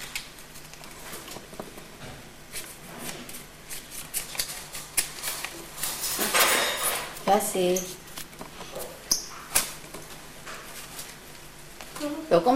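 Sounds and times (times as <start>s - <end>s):
deck of playing cards being shuffled: 0.0s - 6.3s, 7.0s - 12.0s
speech: 7.3s - 8.0s, 12.3s - 12.5s.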